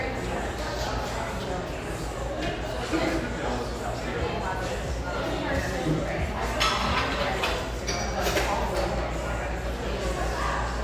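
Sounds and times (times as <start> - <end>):
many voices talking in a busy café: 0.0 - 10.8
cups or dishes clinking: 6.4 - 9.1.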